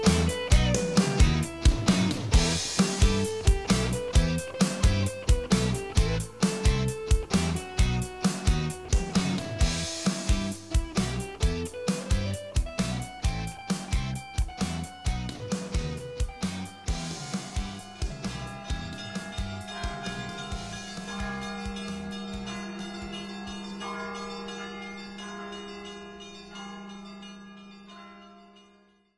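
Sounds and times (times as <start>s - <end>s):
AI-generated cover song: 0.0s - 23.1s.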